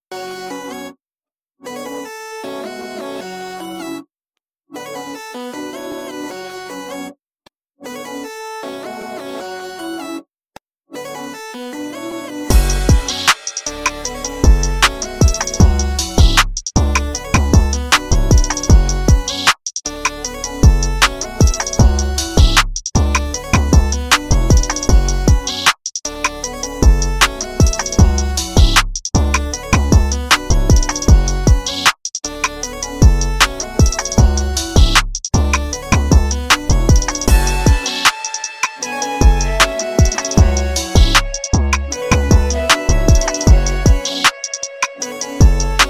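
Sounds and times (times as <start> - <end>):
instrumental rap hip hop beats: 12.3 - 45.8.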